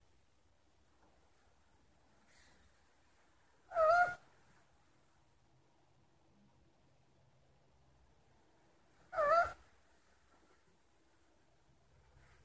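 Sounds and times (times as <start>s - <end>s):
owl hooting: 3.7s - 4.2s, 9.1s - 9.6s.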